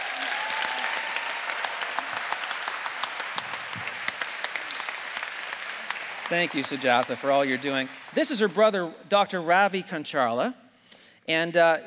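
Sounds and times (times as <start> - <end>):
crowd applause: 0.0 - 8.6
speech: 6.3 - 10.6, 11.2 - 11.8.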